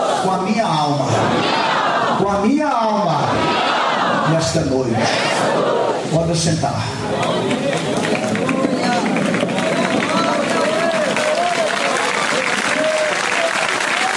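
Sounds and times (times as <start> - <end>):
speech: 0.2 - 7.6
large crowd applauding: 7.0 - 14.1.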